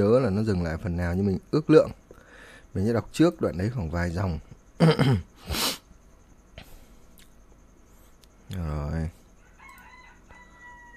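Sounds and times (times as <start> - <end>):
speech: 0.0 - 2.0, 2.7 - 5.6, 8.5 - 9.2
rooster crowing: 9.3 - 10.9.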